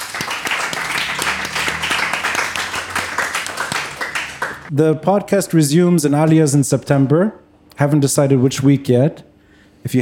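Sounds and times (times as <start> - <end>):
audience applause: 0.0 - 4.7
speech: 4.7 - 9.9.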